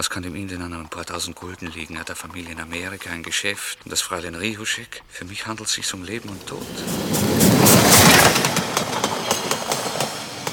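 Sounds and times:
speech: 0:00.0 - 0:08.3
train pulling into Vienna's Südbahnhalle station: 0:06.0 - 0:10.5.

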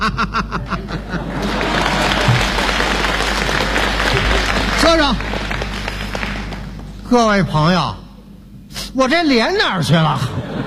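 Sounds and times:
people laughing: 0:00.0 - 0:05.7, 0:10.0 - 0:10.6
speech: 0:00.1 - 0:00.8, 0:07.1 - 0:08.0, 0:09.0 - 0:10.4
audience applause: 0:01.0 - 0:07.4.

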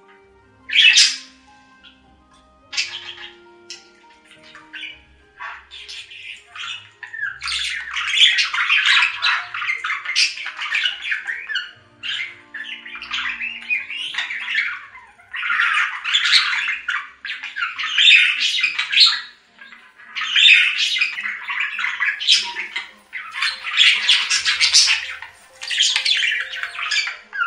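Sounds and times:
budgerigar warbling chatter: 0:00.7 - 0:02.0, 0:02.7 - 0:27.4.

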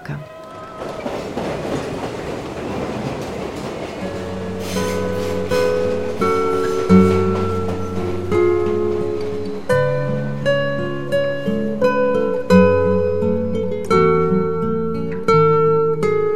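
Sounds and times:
train wheels clattering: 0:00.0 - 0:13.1
train pulling away: 0:00.0 - 0:15.3.

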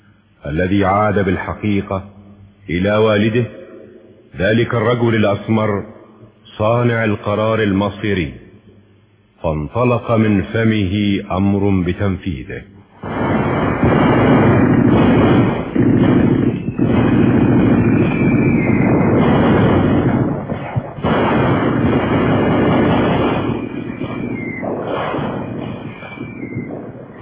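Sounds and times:
speech: 0:00.4 - 0:03.6, 0:04.4 - 0:05.9, 0:06.6 - 0:08.4, 0:09.4 - 0:12.7
explosions: 0:12.9 - 0:27.1
artillery fire: 0:13.0 - 0:27.1.

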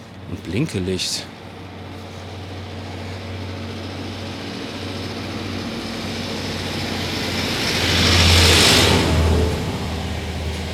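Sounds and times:
winter service gritting truck passing: 0:00.0 - 0:10.7
speech: 0:00.3 - 0:01.4.

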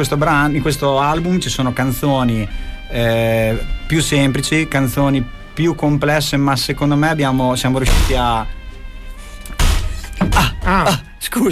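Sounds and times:
speech: 0:00.0 - 0:08.6, 0:10.7 - 0:11.5
loud thump: 0:07.8 - 0:08.5, 0:09.5 - 0:10.7
door slamming: 0:07.8 - 0:08.6, 0:09.2 - 0:11.0.

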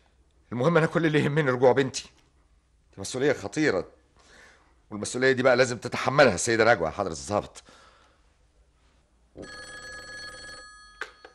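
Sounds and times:
speech: 0:00.5 - 0:02.2, 0:03.0 - 0:04.0, 0:04.9 - 0:07.8, 0:09.4 - 0:09.7
telephone bell ringing: 0:09.4 - 0:11.3.

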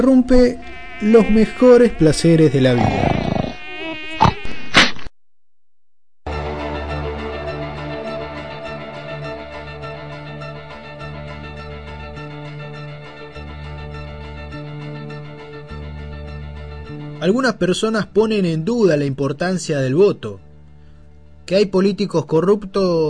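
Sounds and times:
speech: 0:00.0 - 0:03.1, 0:17.3 - 0:20.5, 0:21.5 - 0:23.0
mosquito buzzing: 0:00.3 - 0:05.0.

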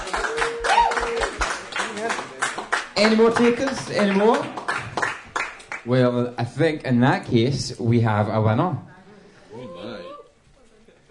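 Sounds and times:
audience round of applause: 0:00.0 - 0:05.9
speech: 0:03.0 - 0:04.6, 0:05.8 - 0:08.9.

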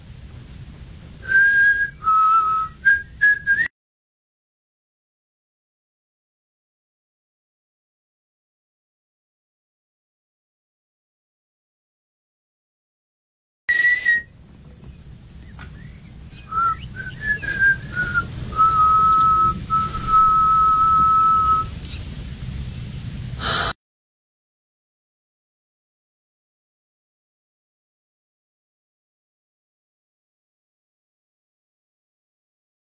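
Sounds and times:
low rumble: 0:00.0 - 0:03.7, 0:13.8 - 0:23.8
person whistling a tune: 0:01.2 - 0:03.7, 0:13.7 - 0:14.3, 0:16.5 - 0:21.7.

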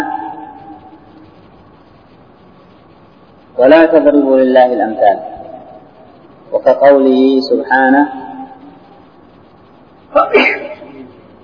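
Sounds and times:
speech: 0:03.6 - 0:05.3, 0:06.7 - 0:08.2
person sneezing: 0:10.1 - 0:11.0.

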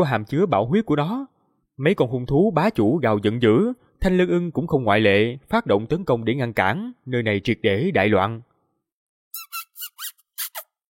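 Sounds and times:
speech: 0:00.0 - 0:08.5
sharp squeak of a giant rat: 0:09.3 - 0:10.8.

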